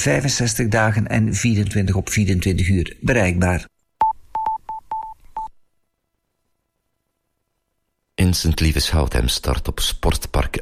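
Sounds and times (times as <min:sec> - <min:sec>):
speech: 0:00.0 - 0:03.7, 0:08.2 - 0:10.6
telephone dialing beeps: 0:04.0 - 0:05.5.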